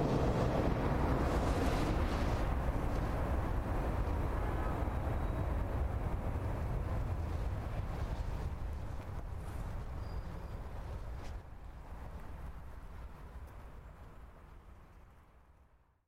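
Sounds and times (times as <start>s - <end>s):
passenger airplane landing: 0.0s - 10.2s.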